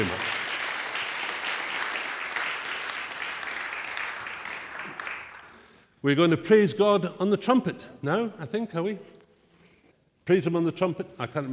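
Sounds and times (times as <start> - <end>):
audience applause: 0.0 - 5.8
speech: 6.0 - 9.2, 10.3 - 11.5.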